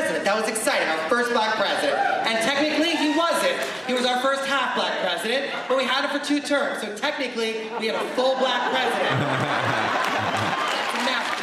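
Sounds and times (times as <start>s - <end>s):
speech: 0.2s - 10.6s
laughter: 7.4s - 11.4s
audience applause: 9.1s - 11.4s.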